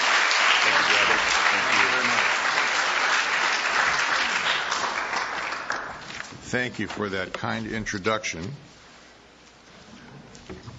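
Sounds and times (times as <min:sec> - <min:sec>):
church congregation applauding a speaker at a morning service: 0:00.0 - 0:06.1
speech: 0:06.5 - 0:08.8.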